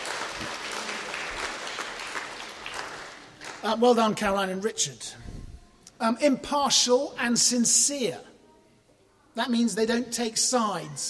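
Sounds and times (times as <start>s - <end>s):
audience applause: 0.0s - 3.7s
speech: 3.6s - 5.2s, 6.0s - 8.3s, 9.4s - 11.0s.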